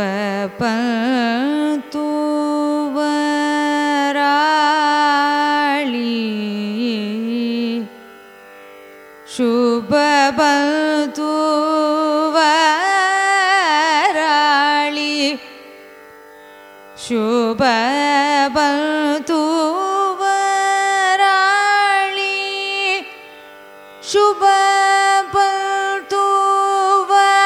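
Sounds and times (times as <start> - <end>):
Carnatic music raga Subha Pantuvarali signature: 0.0 - 27.4.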